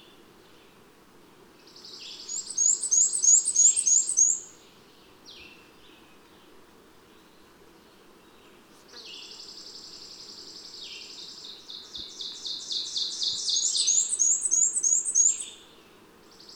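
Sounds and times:
bird song of high rapid twittering phrases and sweeping notes: 1.8s - 4.6s, 9.5s - 15.7s.

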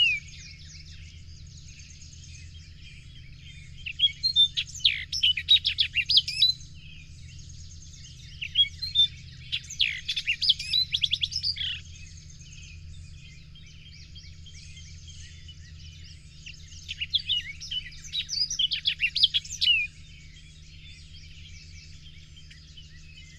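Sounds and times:
bird singing: 0.0s - 23.3s
low droning hum: 0.0s - 23.3s.

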